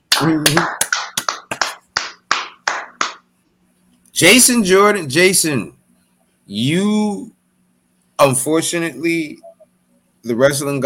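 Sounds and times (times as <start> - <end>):
round of applause, clapping: 0.1 - 3.2
speech: 0.2 - 0.8, 4.2 - 5.8, 6.5 - 7.4, 8.2 - 9.5, 10.2 - 10.8.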